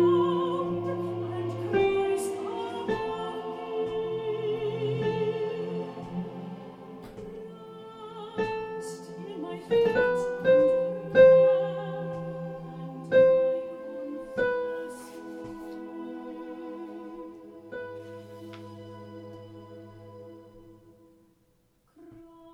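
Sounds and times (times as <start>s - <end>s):
soprano singing: 0.0s - 21.3s, 22.0s - 22.5s.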